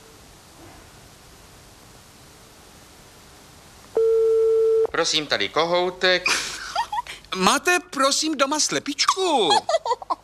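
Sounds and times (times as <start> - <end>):
telephone line ringing tone: 4.0 - 4.9
speech: 5.0 - 6.5, 7.3 - 10.0
laughter: 6.2 - 7.2, 9.1 - 10.2.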